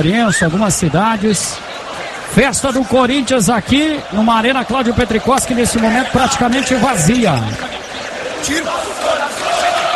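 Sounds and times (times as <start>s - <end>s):
speech: 0.0s - 7.8s, 8.4s - 9.4s
football players and fans singing the club anthem at a small arena: 3.6s - 9.9s.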